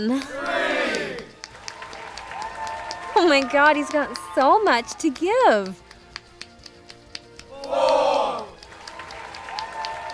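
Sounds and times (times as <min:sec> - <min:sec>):
speech: 0:00.0 - 0:00.5, 0:03.3 - 0:05.8
crowd counting along: 0:00.0 - 0:01.3, 0:07.5 - 0:08.6
crowd cheering: 0:00.2 - 0:05.8, 0:07.5 - 0:10.1.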